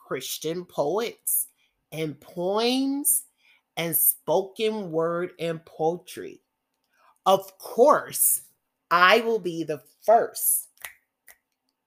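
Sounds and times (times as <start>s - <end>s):
speech: 0.1s - 6.4s, 7.2s - 10.6s
finger snaps: 10.8s - 11.6s.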